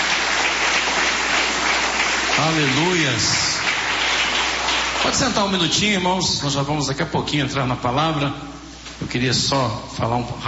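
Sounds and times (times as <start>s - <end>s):
church congregation clapping: 0.0s - 6.7s
speech: 2.4s - 3.6s, 5.0s - 10.4s.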